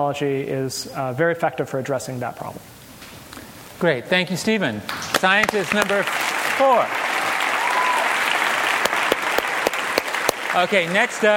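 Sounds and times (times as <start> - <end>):
speech: 0.0 - 2.8, 3.8 - 7.1, 10.5 - 11.3
audience applause: 5.0 - 11.3.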